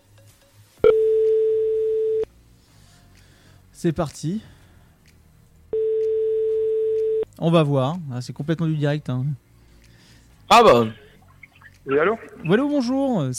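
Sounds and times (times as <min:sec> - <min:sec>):
phone ringback tone while a call is being placed: 0:00.8 - 0:02.3, 0:05.8 - 0:07.2
speech: 0:03.8 - 0:04.6, 0:07.4 - 0:09.4, 0:10.5 - 0:11.0, 0:11.9 - 0:13.3.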